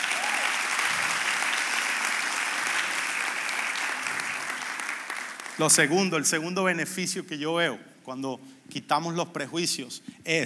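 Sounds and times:
audience applause: 0.0s - 5.8s
speech: 5.6s - 10.4s.

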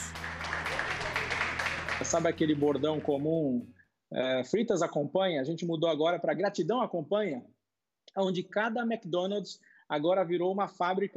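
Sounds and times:
hospital staff applauding in a hospital in Salvador: 0.0s - 3.3s
speech: 2.0s - 7.6s, 8.2s - 11.1s.

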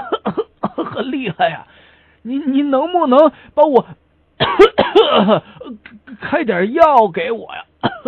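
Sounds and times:
harsh wheezy coughing: 0.0s - 1.6s, 4.4s - 5.9s, 7.8s - 8.0s
speech: 1.0s - 8.0s.

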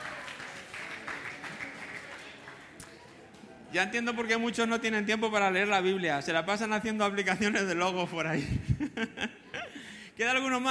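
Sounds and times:
audience applause: 0.0s - 3.6s
speech: 3.7s - 9.3s, 10.2s - 10.6s.

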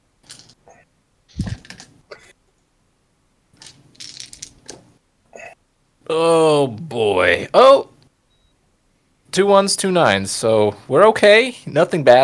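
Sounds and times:
tabletop role-playing dice rattling on a table: 0.2s - 0.6s, 3.6s - 4.8s
speech: 6.1s - 7.9s, 9.4s - 12.2s.

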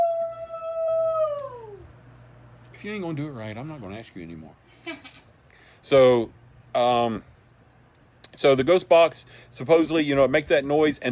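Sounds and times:
person imitating a Sasquatch yell: 0.0s - 1.9s
speech: 2.8s - 5.0s, 5.9s - 7.3s, 8.4s - 11.0s.

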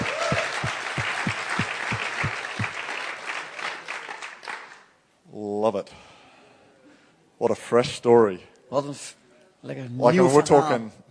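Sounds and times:
audience applause: 0.0s - 4.9s
speech: 5.7s - 6.1s, 7.4s - 11.0s.

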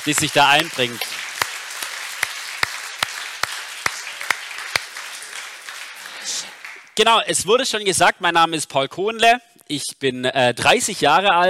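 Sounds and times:
speech: 0.0s - 1.2s, 7.0s - 11.4s
audience applause: 0.0s - 7.0s.

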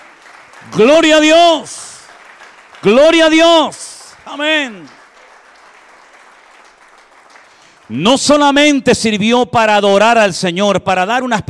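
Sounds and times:
audience applause: 0.0s - 8.0s
speech: 0.6s - 1.8s, 2.8s - 5.0s, 7.9s - 11.4s.

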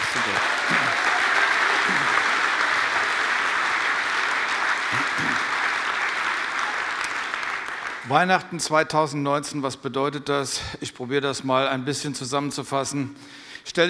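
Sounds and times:
faint cheers: 0.0s - 3.1s
audience applause: 0.0s - 8.4s
speech: 8.1s - 13.8s.

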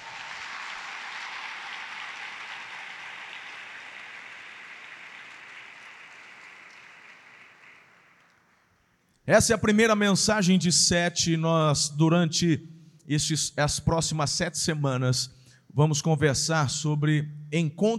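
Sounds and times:
audience applauding: 0.0s - 8.5s
speech: 9.3s - 17.9s.

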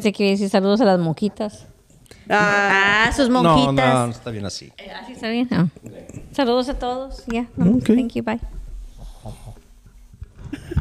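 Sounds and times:
speech: 0.0s - 1.7s, 2.3s - 8.6s, 9.2s - 9.5s
snoring: 9.0s - 9.7s.

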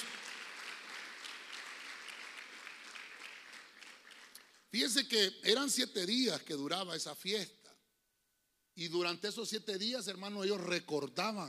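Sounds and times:
audience clapping loudly: 0.0s - 4.7s
speech: 4.7s - 7.6s, 8.8s - 11.4s.

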